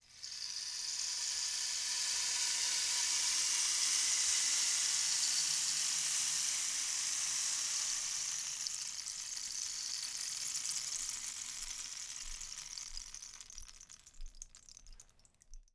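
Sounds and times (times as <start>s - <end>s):
rain stick: 0.0s - 15.7s.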